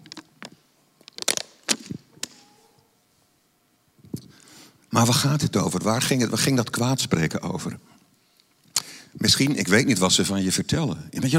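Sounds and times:
plastic water bottle crinkling during a sip: 0.0s - 2.5s
speech: 4.9s - 8.0s, 9.2s - 11.3s.

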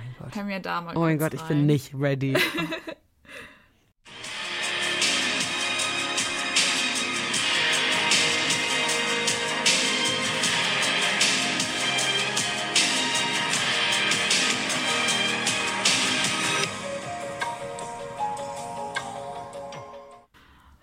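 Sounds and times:
speech: 0.3s - 3.5s
laughter: 2.4s - 3.0s
instrumental version of a pop song: 4.1s - 20.3s.

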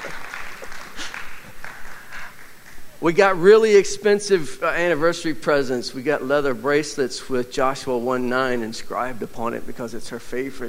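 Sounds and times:
audience applause: 0.0s - 2.8s
speech: 3.0s - 10.6s.

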